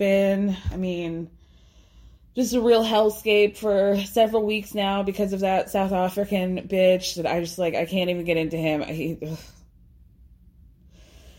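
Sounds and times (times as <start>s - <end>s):
speech: 0.0s - 1.4s, 2.4s - 9.6s
deep cleansing breath: 1.3s - 2.4s, 10.8s - 11.3s.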